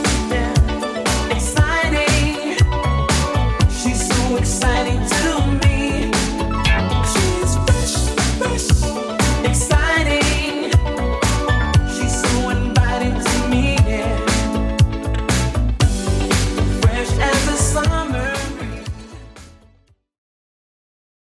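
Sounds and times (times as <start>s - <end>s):
80s-style electronic music at 118 bpm: 0.0s - 19.8s.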